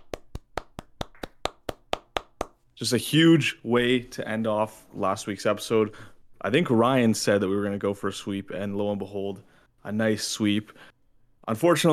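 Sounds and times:
single pair of hands clapping: 0.0s - 2.6s
speech: 2.8s - 10.9s, 11.5s - 11.9s.

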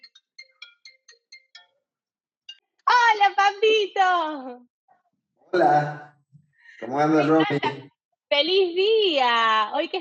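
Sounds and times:
phone ringtone while calling someone: 0.0s - 1.7s
speech: 3.6s - 4.7s, 5.5s - 6.1s, 6.9s - 9.9s
laughter: 6.8s - 7.9s.

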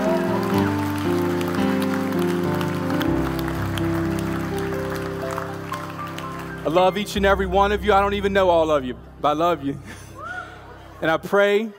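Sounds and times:
audience applause: 0.0s - 7.4s
speech: 6.7s - 10.0s, 11.0s - 11.7s.

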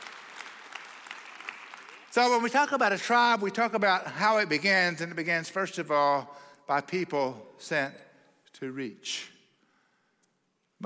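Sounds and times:
audience clapping: 0.0s - 2.8s
speech: 2.1s - 9.4s.

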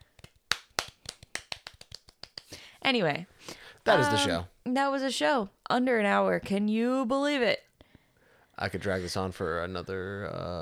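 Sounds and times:
cheap golf clap: 0.0s - 2.6s
speech: 2.8s - 7.7s, 8.6s - 10.5s.

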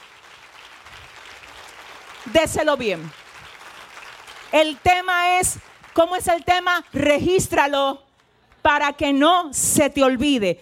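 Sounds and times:
audience applause: 0.0s - 6.6s
speech: 2.2s - 3.2s, 4.5s - 8.0s, 8.6s - 10.6s.

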